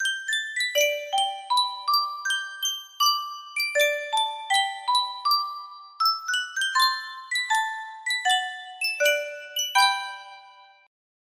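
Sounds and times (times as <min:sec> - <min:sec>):
Sankyo miniature music box: 0:00.0 - 0:10.9.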